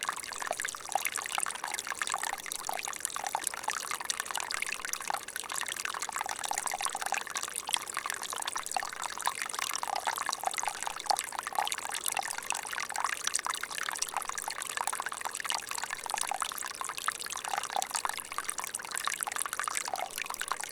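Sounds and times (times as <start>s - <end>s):
stream at 1700 m: 0.0s - 20.7s.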